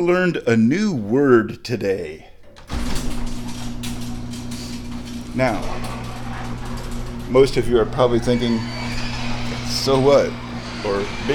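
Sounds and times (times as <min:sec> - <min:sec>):
speech: 0:00.0 - 0:02.3, 0:05.4 - 0:06.0, 0:07.3 - 0:08.8, 0:09.7 - 0:11.3
garage door opener motor humming: 0:02.3 - 0:11.3
faint rattling drone of garage door opening: 0:02.4 - 0:11.3.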